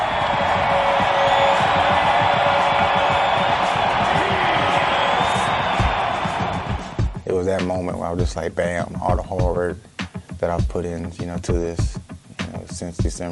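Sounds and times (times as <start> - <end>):
stadium fans screaming and cheering: 0.0 - 7.2
speech: 7.6 - 12.0, 12.8 - 13.3.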